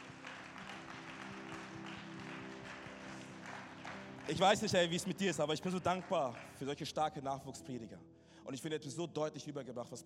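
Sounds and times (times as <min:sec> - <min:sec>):
crowd applauding: 0:00.0 - 0:06.9
speech: 0:04.3 - 0:10.0.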